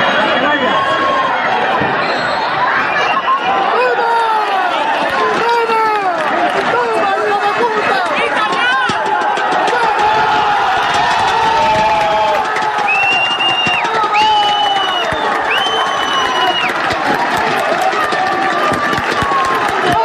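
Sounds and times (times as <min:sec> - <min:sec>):
football stadium crowd cheering at final whistle: 0:00.0 - 0:20.0.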